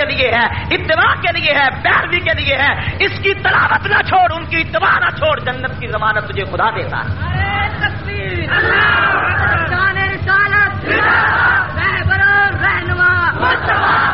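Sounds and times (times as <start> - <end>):
speech: 0.2 - 12.0
crowd at a religious gathering chanting religious slogans: 8.5 - 9.7, 10.8 - 11.8, 13.3 - 14.1.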